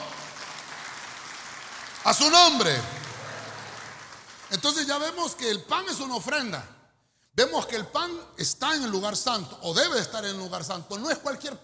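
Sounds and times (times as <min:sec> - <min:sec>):
audience clapping: 0:00.0 - 0:05.4
speech: 0:02.0 - 0:03.0, 0:04.5 - 0:06.7, 0:07.4 - 0:11.6.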